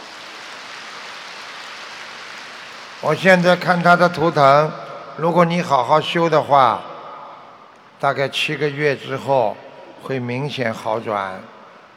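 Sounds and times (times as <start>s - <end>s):
applause: 0.0s - 4.3s
speech: 3.0s - 6.9s, 8.0s - 11.6s.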